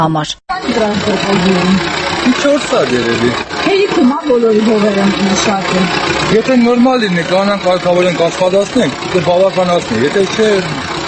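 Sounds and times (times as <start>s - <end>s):
speech: 0.0s - 10.8s
old village tractor engine idling: 0.5s - 11.0s.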